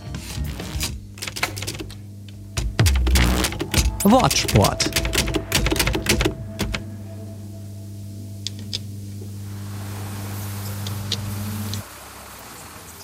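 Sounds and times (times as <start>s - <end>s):
construction machine drone at a technology park: 0.0s - 12.1s
construction sharp clattering knocks: 2.6s - 6.8s
speech: 4.0s - 5.1s.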